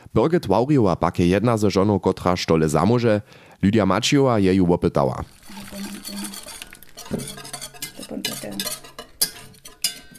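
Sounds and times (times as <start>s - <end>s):
speech: 0.1s - 5.9s
utensil stirring starch into water in enamel bowl: 5.2s - 10.1s.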